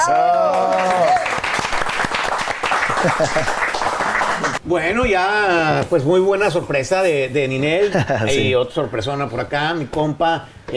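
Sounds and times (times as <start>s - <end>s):
speech: 0.0s - 0.4s, 3.0s - 3.7s, 4.4s - 10.7s
applause: 0.0s - 4.6s
laughter: 2.9s - 4.5s.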